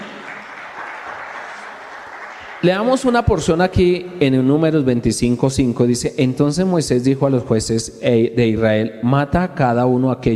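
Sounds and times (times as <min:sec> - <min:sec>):
loud sustained audience applause: 0:00.0 - 0:02.9
speech: 0:02.6 - 0:10.3.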